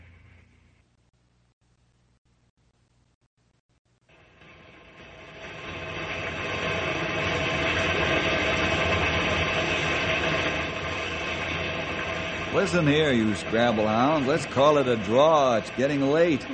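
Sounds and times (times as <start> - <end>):
old train engine chugging along: 4.2 - 16.5
speech: 12.6 - 16.5.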